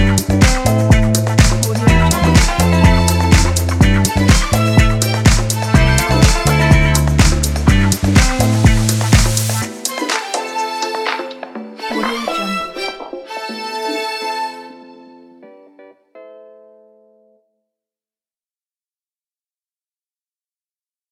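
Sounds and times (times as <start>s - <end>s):
summer chillout music: 0.0s - 16.8s.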